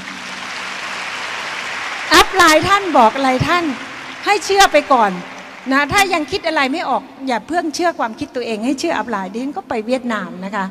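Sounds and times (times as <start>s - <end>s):
audience applause: 0.0s - 6.8s
speech: 2.3s - 10.6s.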